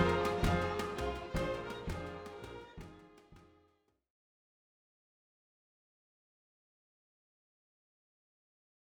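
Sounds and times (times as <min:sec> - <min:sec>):
violins playing a leitmotif: 0:00.0 - 0:03.2.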